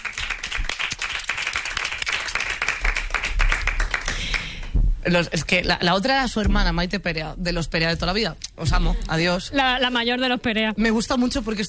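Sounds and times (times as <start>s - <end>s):
audience applause: 0.0s - 4.6s
speech: 5.0s - 11.6s.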